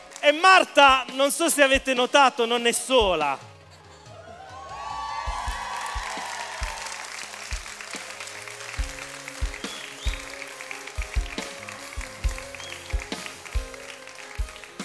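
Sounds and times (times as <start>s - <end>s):
speech: 0.2s - 3.5s
audience applause at a Sunday gathering welcoming a guest: 4.6s - 14.8s.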